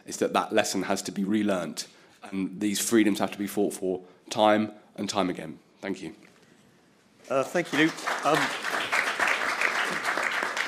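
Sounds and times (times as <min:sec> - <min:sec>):
speech: 0:00.1 - 0:06.3, 0:07.2 - 0:08.8
audience clapping after a speech on democracy and freedoms: 0:07.5 - 0:10.6.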